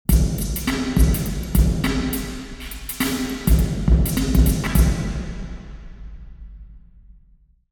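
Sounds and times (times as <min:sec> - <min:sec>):
distant drum in a church: 0:00.1 - 0:06.0.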